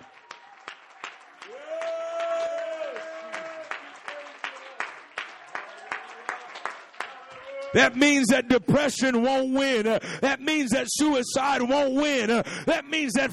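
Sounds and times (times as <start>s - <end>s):
audience clapping hands: 0.0s - 8.4s
speech: 7.7s - 13.3s.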